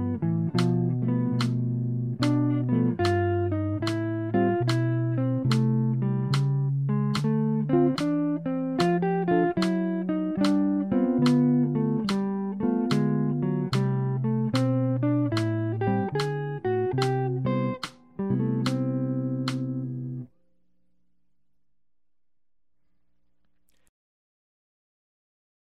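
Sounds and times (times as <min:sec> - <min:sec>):
jazz music: 0:00.0 - 0:20.2.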